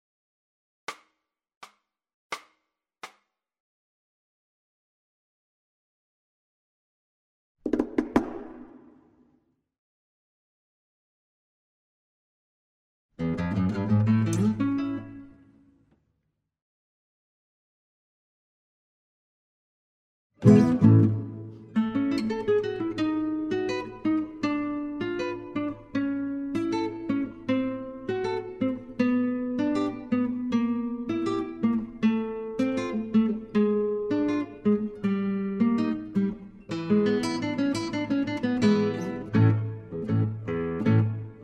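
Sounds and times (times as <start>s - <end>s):
guitar: 13.2s - 16.0s, 20.4s - 41.4s.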